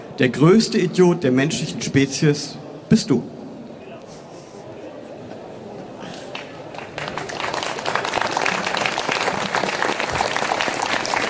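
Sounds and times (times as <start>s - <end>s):
faint crowd voices: 0.0s - 11.2s
speech: 0.2s - 3.4s
audience clapping: 6.3s - 11.2s.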